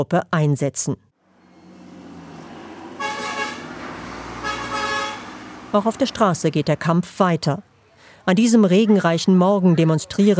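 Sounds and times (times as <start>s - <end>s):
speech: 0.0s - 1.1s, 5.7s - 10.3s
steady rumble of road traffic: 1.2s - 8.2s
car horns honking on busy street: 1.3s - 6.5s.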